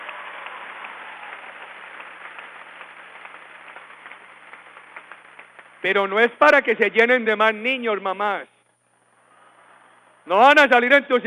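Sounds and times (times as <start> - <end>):
audience applause for the mothers: 0.0 - 6.4
speech: 5.8 - 8.5, 10.3 - 11.2.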